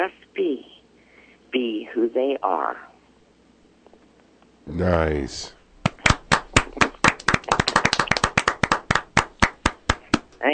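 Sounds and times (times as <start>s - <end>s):
speech: 0.0s - 0.7s, 1.5s - 2.9s, 4.7s - 5.6s
small group clapping: 5.8s - 10.3s.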